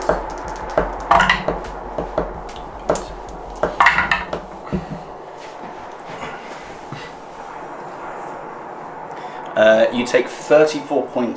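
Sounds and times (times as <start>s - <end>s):
dice rattling and clattering across a hard surface: 0.0s - 4.3s
speech: 10.0s - 11.3s.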